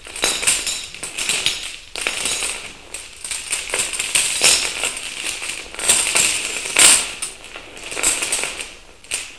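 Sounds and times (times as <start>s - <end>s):
chains: 0.0s - 9.3s.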